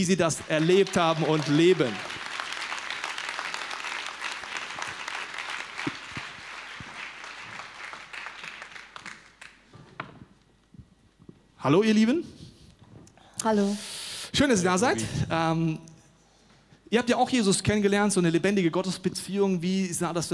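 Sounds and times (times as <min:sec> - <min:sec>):
speech: 0:00.0 - 0:02.1, 0:11.6 - 0:12.4, 0:13.4 - 0:15.9, 0:16.9 - 0:20.3
roaring applause: 0:00.0 - 0:09.7.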